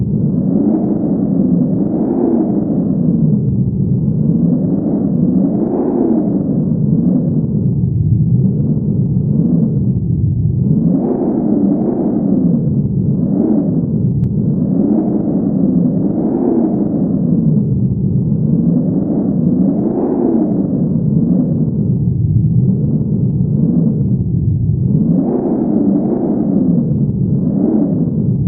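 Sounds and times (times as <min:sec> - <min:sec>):
wind: 0:00.0 - 0:28.4.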